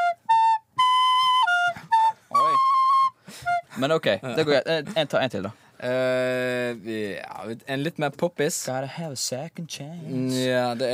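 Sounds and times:
tune played on a recorder flute: 0.0s - 3.7s
speech: 3.8s - 10.9s.

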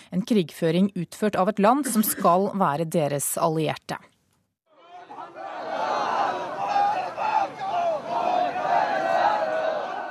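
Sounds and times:
speech: 0.1s - 4.1s
protesters chanting in Islamabad: 4.7s - 10.0s.

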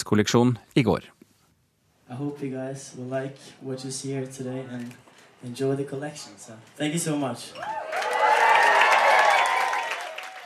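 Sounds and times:
speech: 0.0s - 1.2s, 2.1s - 8.1s
audience applause and cheering at fashion show: 7.6s - 10.4s.

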